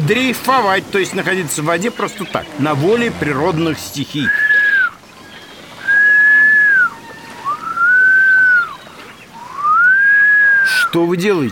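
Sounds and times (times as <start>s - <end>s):
speech: 0.1s - 4.4s, 10.9s - 11.5s
person whistling to call the wind: 4.2s - 5.0s, 5.8s - 8.8s, 9.4s - 10.9s.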